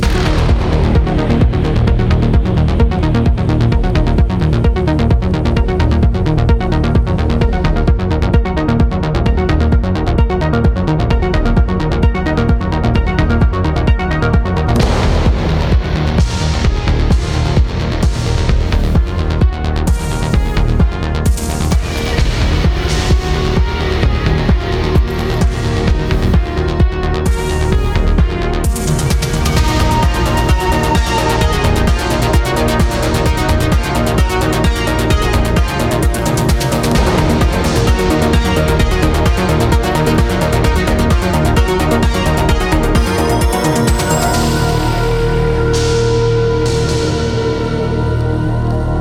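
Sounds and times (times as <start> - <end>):
sci-fi battle music: 0.0 - 48.9.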